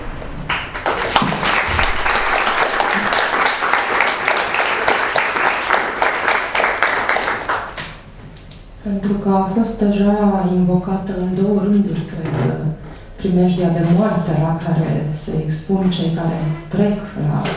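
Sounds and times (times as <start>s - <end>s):
audience applause: 0.5s - 8.0s
speech: 8.9s - 17.5s.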